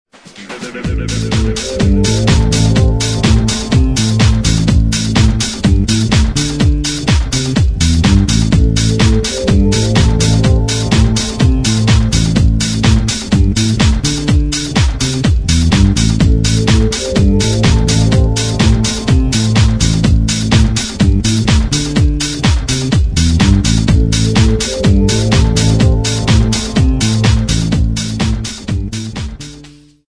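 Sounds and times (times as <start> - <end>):
house music: 0.4 - 29.8.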